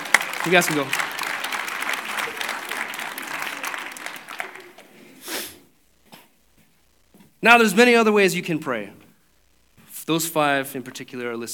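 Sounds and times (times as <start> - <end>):
audience applause: 0.0 - 5.2
speech: 0.4 - 1.1, 7.4 - 9.0, 10.1 - 11.5.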